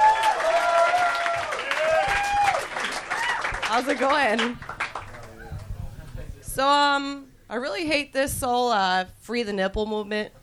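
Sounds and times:
audience whoops and cheers: 0:00.0 - 0:03.6
audience applause: 0:00.0 - 0:05.7
speech: 0:03.8 - 0:04.7, 0:06.6 - 0:10.4.

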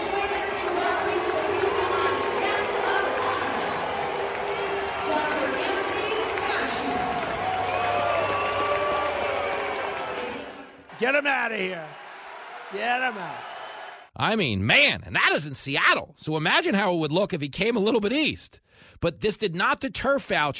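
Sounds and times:
large stadium crowd booing: 0:00.0 - 0:14.1
speech: 0:11.0 - 0:12.0, 0:12.7 - 0:13.5, 0:14.2 - 0:20.5.

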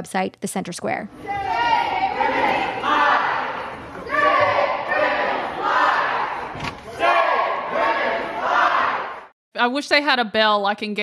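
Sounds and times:
speech: 0:00.0 - 0:01.5, 0:09.6 - 0:11.0
legislators chanting shame on house floor: 0:01.2 - 0:09.3.

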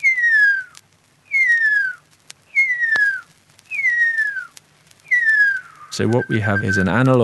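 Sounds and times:
faint clicks: 0:00.0 - 0:07.2
person whistling in imitation of huia birdsong: 0:01.3 - 0:04.5, 0:05.1 - 0:07.1
speech: 0:06.0 - 0:07.2.

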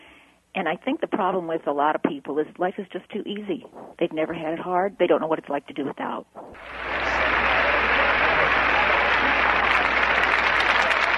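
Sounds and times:
speech: 0:00.6 - 0:06.9
crowd applauding: 0:06.5 - 0:11.1.

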